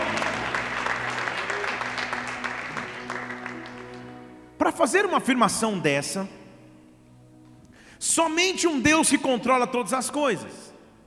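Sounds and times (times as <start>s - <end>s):
audience applauding: 0.0s - 4.4s
speech: 4.7s - 6.4s, 8.2s - 10.6s.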